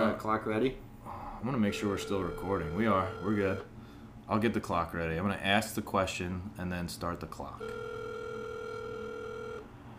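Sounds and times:
speech: 0:00.2 - 0:08.0
buzzy telephone ringback tone over a speakerphone: 0:01.7 - 0:03.7, 0:07.6 - 0:09.7.

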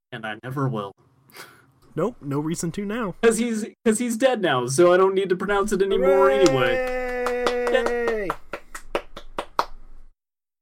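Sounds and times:
speech: 0:00.1 - 0:07.0
hand clapping: 0:06.4 - 0:09.8.

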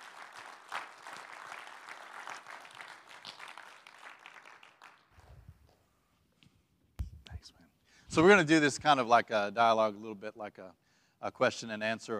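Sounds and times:
faint audience applause welcoming a guest onstage: 0:00.0 - 0:05.4
speech: 0:08.1 - 0:12.1.

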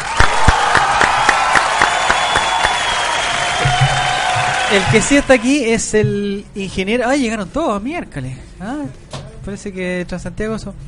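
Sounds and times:
crowd applauding: 0:00.0 - 0:05.6
speech: 0:04.7 - 0:10.8.

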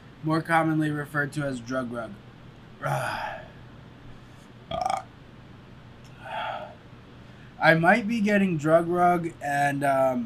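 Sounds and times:
speech: 0:00.2 - 0:03.5, 0:07.6 - 0:10.2
burping: 0:04.7 - 0:05.1.

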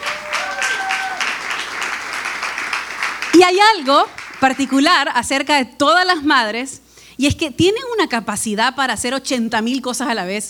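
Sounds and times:
audience applause: 0:00.0 - 0:04.9
speech: 0:03.3 - 0:10.4.

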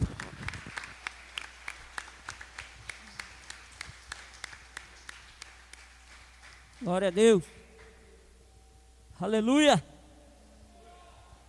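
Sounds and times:
church congregation applauding their pastor: 0:00.0 - 0:08.3
speech: 0:06.9 - 0:07.6, 0:09.2 - 0:09.9.

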